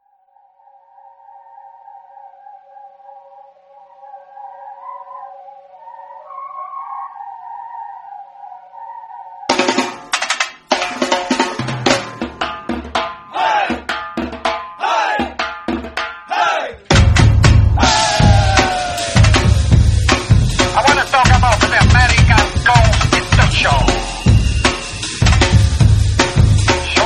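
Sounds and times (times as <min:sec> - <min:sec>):
donkey beat: 0:09.5 - 0:27.0.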